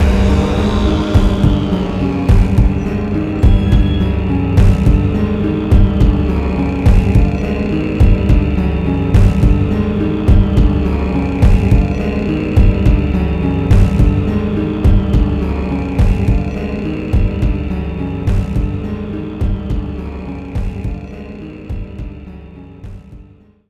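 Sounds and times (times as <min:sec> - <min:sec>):
background music loop: 0:00.0 - 0:23.6.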